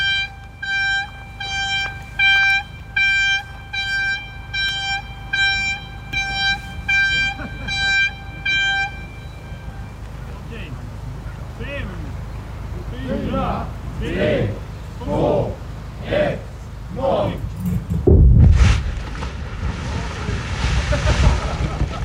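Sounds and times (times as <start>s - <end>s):
warning horn tooting: 0.0s - 18.1s
laughter: 6.6s - 9.2s, 20.6s - 22.0s
construction site blasting explosion: 17.9s - 22.0s.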